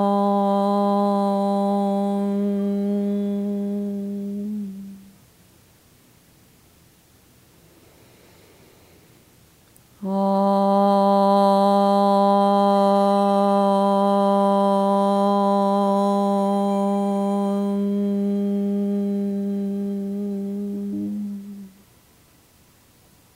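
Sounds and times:
chanting om during meditation: 0.0s - 5.2s, 10.0s - 21.9s.

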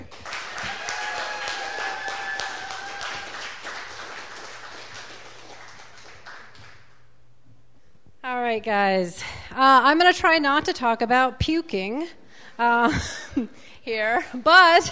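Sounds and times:
audience applause: 0.0s - 6.9s
cheers and whistles: 0.5s - 3.5s
speech: 8.6s - 14.9s.

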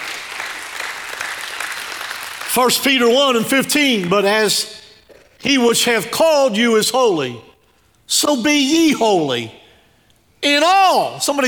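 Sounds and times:
audience clapping: 0.0s - 4.5s
speech: 2.6s - 4.8s, 5.4s - 7.5s, 8.1s - 9.6s, 10.4s - 11.4s.

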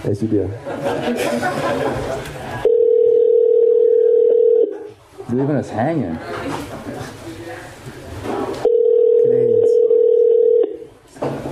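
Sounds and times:
speech: 0.0s - 2.5s, 5.3s - 7.2s
chatter: 0.1s - 3.0s, 4.7s - 11.5s
laughter: 0.6s - 2.7s
telephone dial tone as a call is placed: 2.7s - 4.7s, 8.7s - 10.8s.

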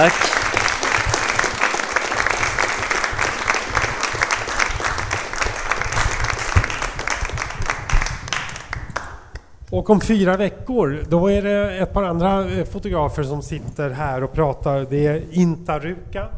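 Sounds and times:
speech: 0.0s - 0.4s, 9.8s - 16.3s
audience applause: 0.0s - 9.2s.

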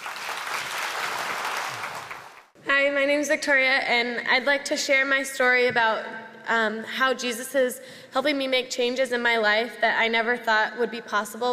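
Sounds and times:
audience applause welcoming a guest speaker at a Christian talk: 0.0s - 2.5s
speech: 2.8s - 11.5s.

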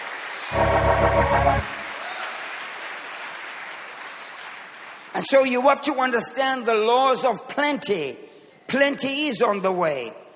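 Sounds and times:
audience clapping: 0.0s - 5.2s
speech: 5.2s - 10.2s.

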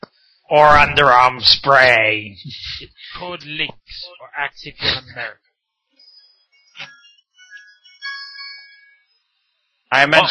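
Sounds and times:
speech: 0.5s - 5.5s, 9.9s - 10.2s
phone ringtone: 6.0s - 9.7s.

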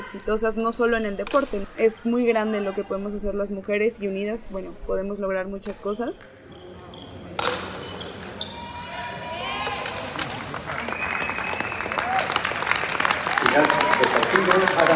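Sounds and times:
speech: 0.0s - 6.4s
applause for the athletes: 9.8s - 14.9s
high whistle-like tones: 10.9s - 12.0s.

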